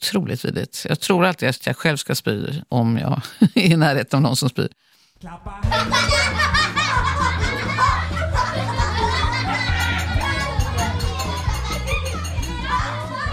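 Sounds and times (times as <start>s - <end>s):
speech: 0.0s - 6.5s
excited young voices: 5.6s - 13.3s
children laughing and shrieking at a birthday party in Sweden: 5.7s - 13.3s.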